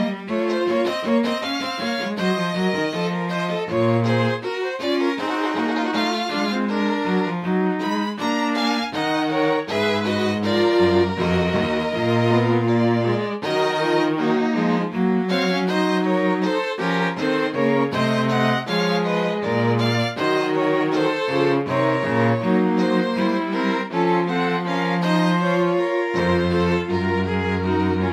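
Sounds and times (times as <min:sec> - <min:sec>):
fugue in B flat minor transcription: 0:00.0 - 0:28.1.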